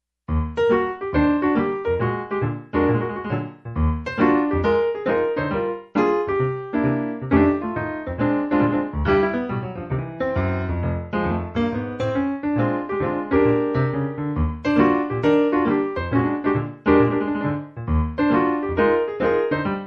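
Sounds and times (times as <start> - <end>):
early jazz music: 0.2 - 19.8.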